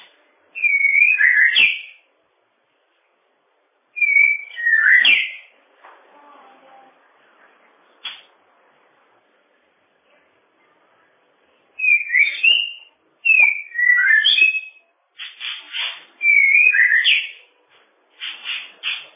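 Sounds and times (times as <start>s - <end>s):
bird whistling song: 0.6s - 2.0s, 4.0s - 5.5s, 11.8s - 17.4s, 18.2s - 19.1s.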